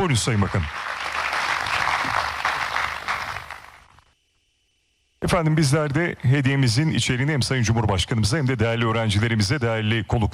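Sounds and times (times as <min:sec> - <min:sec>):
speech: 0:00.0 - 0:00.9, 0:05.3 - 0:10.3
audience applause at an opening ceremony: 0:00.0 - 0:04.0.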